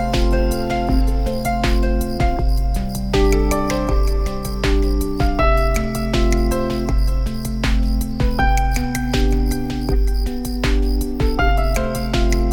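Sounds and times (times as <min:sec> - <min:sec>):
cicada buzzing call with high rasping trill: 0:00.0 - 0:12.5.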